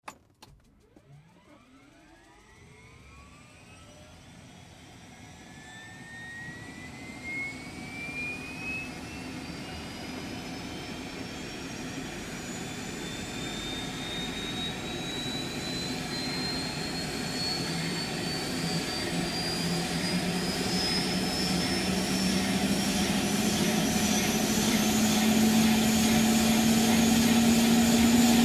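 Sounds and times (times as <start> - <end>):
helicopter starting up, lifting off and hovering: 0.1 - 28.4.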